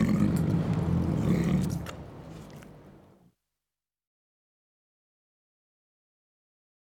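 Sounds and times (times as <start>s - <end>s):
tiger growling: 0.0s - 2.0s.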